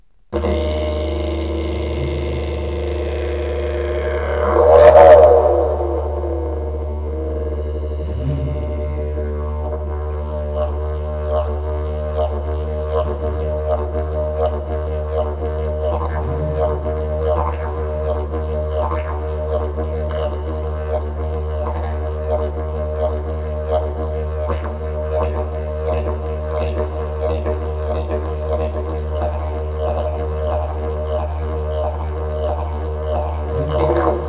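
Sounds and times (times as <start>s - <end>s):
didgeridoo: 0.3s - 34.2s.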